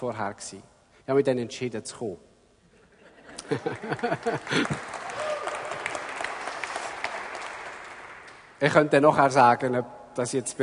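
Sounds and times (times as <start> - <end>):
speech: 0.0 - 2.3, 3.5 - 5.0, 8.6 - 10.6
laughter: 2.9 - 5.0
audience clapping: 3.4 - 8.6.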